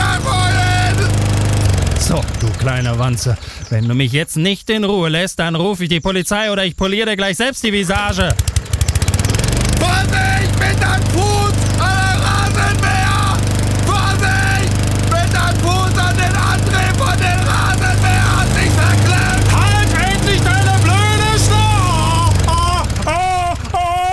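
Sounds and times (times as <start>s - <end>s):
lawnmower: 0.0s - 3.8s, 7.8s - 24.1s
speech: 2.4s - 8.5s
laughter: 9.8s - 14.8s, 15.4s - 24.1s.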